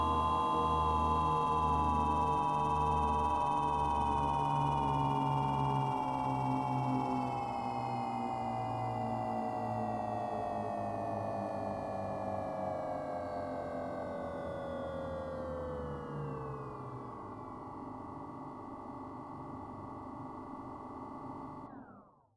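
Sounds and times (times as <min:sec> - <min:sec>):
quadcopter drone: 0:00.0 - 0:17.4.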